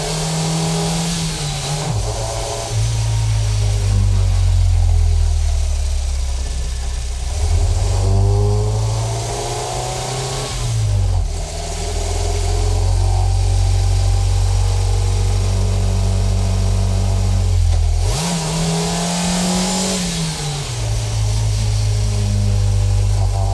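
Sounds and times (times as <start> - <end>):
Renault R4 GTL engine driving at various speeds and shifting gear down: 0.0 - 23.5.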